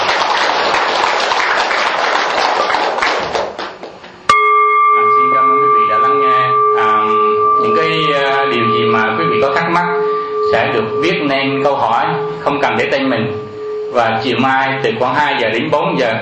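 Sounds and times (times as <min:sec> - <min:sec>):
audience applauding at the end of a talk: 0:00.0 - 0:04.0
struck bell-like ringing: 0:04.3 - 0:16.0
speech: 0:12.8 - 0:16.2.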